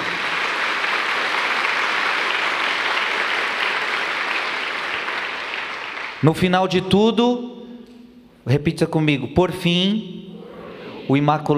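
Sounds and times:
audience applause: 0.0s - 6.2s
speech: 6.2s - 7.6s, 8.5s - 10.2s, 11.1s - 11.5s.

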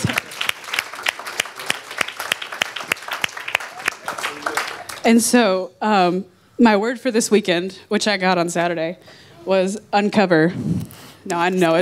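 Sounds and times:
audience clapping: 0.0s - 5.2s
speech: 5.0s - 11.8s.

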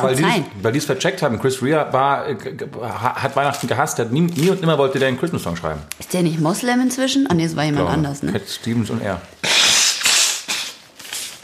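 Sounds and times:
speech: 0.0s - 9.7s
person sneezing: 9.4s - 10.8s.

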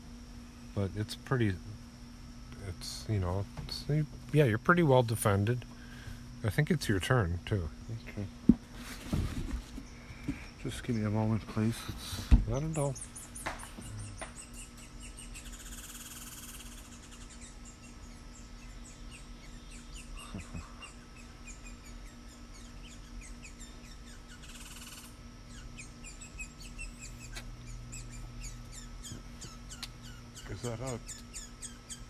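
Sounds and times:
speech: 0.8s - 1.8s, 2.7s - 5.7s, 6.4s - 8.4s, 10.7s - 13.1s
squirrel making a warbling call: 12.6s - 32.0s.

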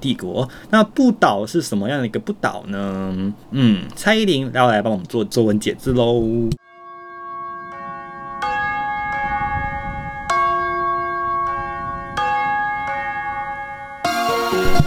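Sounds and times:
speech: 0.0s - 6.6s
church bell ringing: 6.6s - 14.8s.

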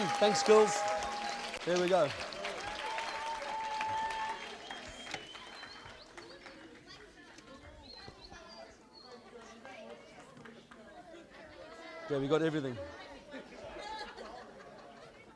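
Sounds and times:
audience applause: 0.0s - 7.2s
speech: 0.1s - 1.0s, 1.6s - 2.3s, 12.1s - 13.0s
laughter: 12.7s - 15.3s.

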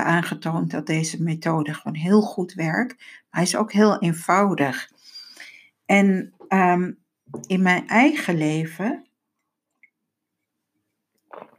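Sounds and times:
speech: 0.0s - 4.9s, 5.9s - 9.1s
person sipping a drink: 11.1s - 11.5s.

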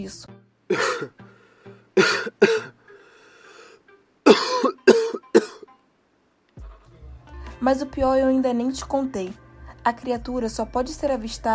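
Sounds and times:
speech: 0.0s - 1.3s, 2.0s - 2.7s, 7.7s - 11.5s
coughing fit: 0.7s - 1.2s, 2.0s - 2.8s, 4.2s - 5.7s.

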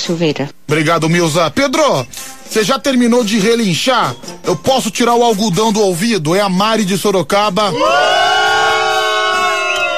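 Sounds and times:
speech: 0.1s - 8.2s
crowd booing: 7.7s - 9.9s.

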